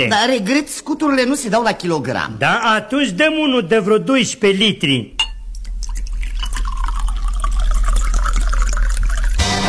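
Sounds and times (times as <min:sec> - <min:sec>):
speech: 0:00.0 - 0:05.2
spirit liquid pouring into a container: 0:05.2 - 0:09.5
fizzy trickle: 0:05.4 - 0:09.4.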